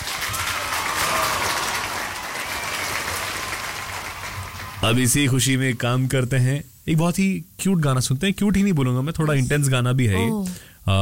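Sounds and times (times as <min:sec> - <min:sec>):
applause: 0:00.0 - 0:05.4
speech: 0:04.8 - 0:11.0.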